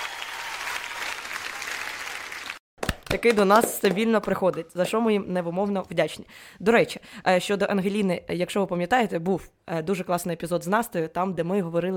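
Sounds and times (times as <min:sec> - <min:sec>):
applause: 0:00.0 - 0:02.6
speech: 0:03.1 - 0:11.9.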